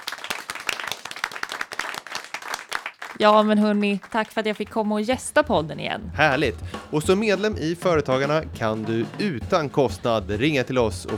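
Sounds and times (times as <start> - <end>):
small group applauding: 0.0 - 5.0
speech: 3.2 - 11.1.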